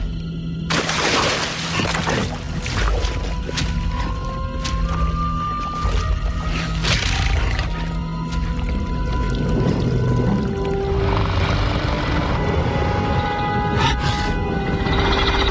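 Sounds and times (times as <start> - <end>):
dinosaurs drinking water at a lake watering hole: 0.0 - 11.6
deep drone: 0.0 - 15.4.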